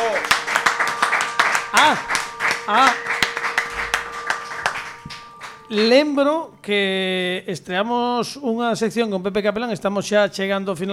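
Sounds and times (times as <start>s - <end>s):
studio audience clapping: 0.0s - 5.9s
speech: 1.8s - 2.1s, 2.7s - 3.0s, 5.7s - 10.9s.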